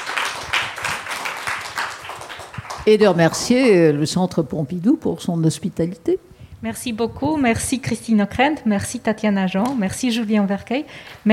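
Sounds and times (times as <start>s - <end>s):
audience applauding the experts: 0.0s - 2.9s
speech: 2.9s - 11.3s.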